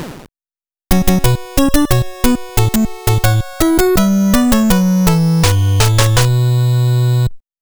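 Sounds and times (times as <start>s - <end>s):
game over background music: 0.9s - 7.3s.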